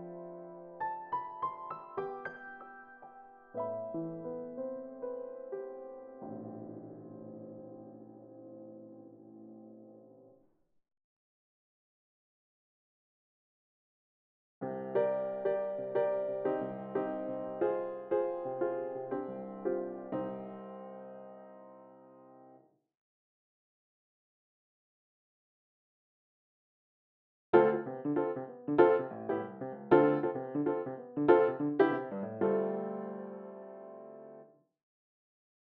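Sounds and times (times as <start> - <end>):
ragtime piano from a sample library: 0.0 - 10.0, 14.6 - 21.9, 27.6 - 34.5.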